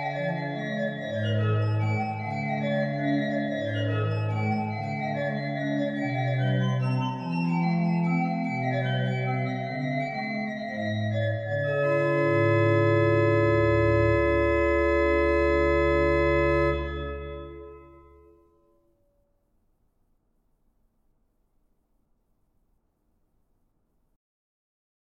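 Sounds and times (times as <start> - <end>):
piano piece in folia style: 0.0 - 18.8.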